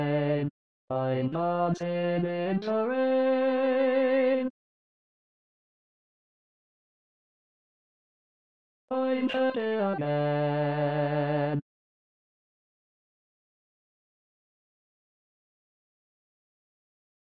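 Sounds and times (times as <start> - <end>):
tenor voice singing an SATB choral part: 0.0 - 4.5, 8.9 - 11.6.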